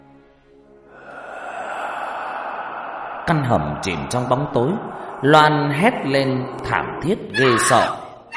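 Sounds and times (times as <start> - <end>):
frenzied heavy breathing: 0.8 - 7.4
speech: 3.3 - 8.0.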